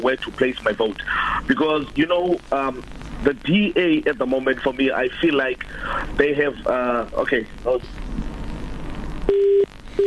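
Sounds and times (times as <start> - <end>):
noisy talk on the phone line: 0.0 - 7.8
speech: 0.0 - 8.0
phone line beep after a caller's airtime runs out: 9.3 - 10.0.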